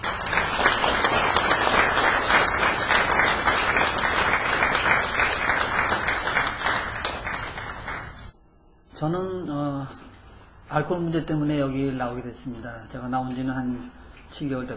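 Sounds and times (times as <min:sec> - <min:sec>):
audience applause: 0:00.0 - 0:08.3
speech: 0:09.0 - 0:10.0, 0:10.7 - 0:14.7.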